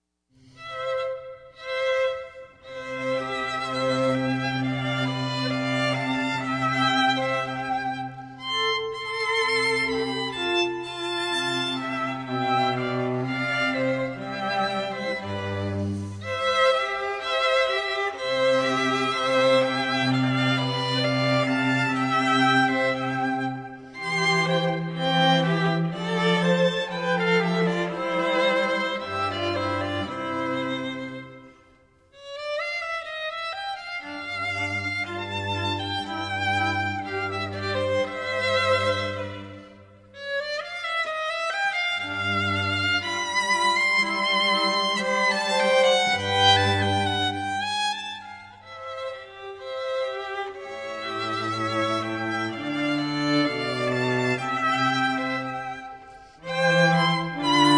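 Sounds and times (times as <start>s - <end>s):
string trio playing: 0.4s - 57.7s.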